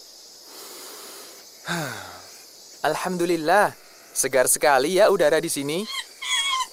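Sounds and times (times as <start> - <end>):
speech: 1.7 - 2.1, 2.8 - 6.0
monkey calls in a forest: 5.6 - 6.7.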